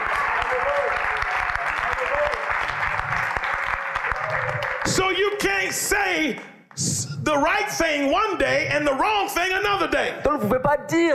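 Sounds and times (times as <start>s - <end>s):
audience applauding: 0.0s - 6.8s
speech: 4.9s - 11.1s.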